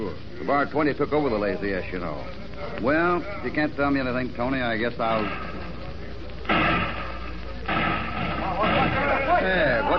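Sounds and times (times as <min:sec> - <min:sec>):
speech: 0:00.0 - 0:05.5
gunshots in a town: 0:06.4 - 0:09.6.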